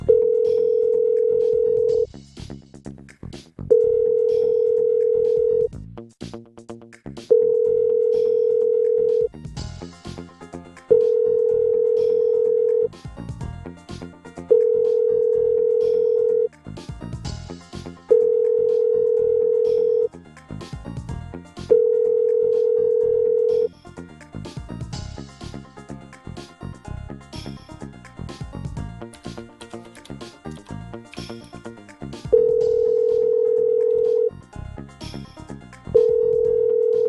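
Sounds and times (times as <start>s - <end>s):
steady electronic telephone ring tone: 0.0s - 2.1s, 3.7s - 5.7s, 7.3s - 9.3s, 10.9s - 13.0s, 14.5s - 16.5s, 18.1s - 20.1s, 21.7s - 23.7s, 32.3s - 34.4s, 36.0s - 37.0s.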